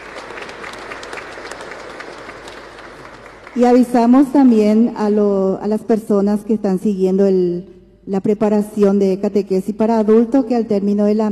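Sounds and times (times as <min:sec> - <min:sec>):
applause in church: 0:00.0 - 0:04.9
speech: 0:03.6 - 0:11.3.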